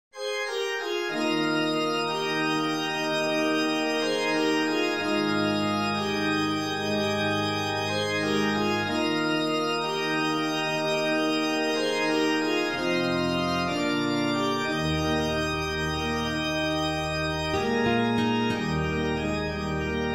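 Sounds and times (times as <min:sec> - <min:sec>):
organ medley: 0:00.2 - 0:20.1.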